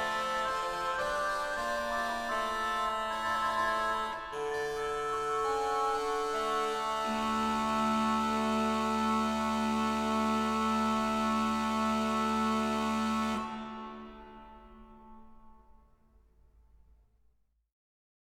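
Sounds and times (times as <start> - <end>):
organ playing a ricercare: 0.0 - 14.5.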